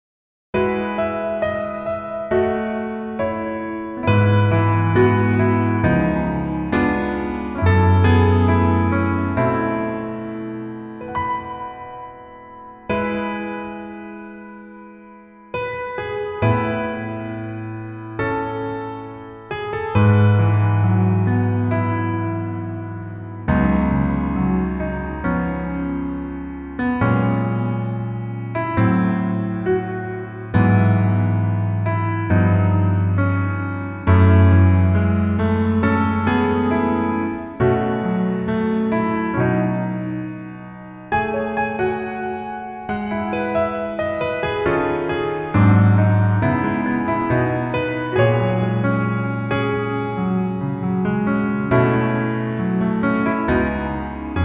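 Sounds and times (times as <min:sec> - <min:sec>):
piano music: 0:00.6 - 0:54.4.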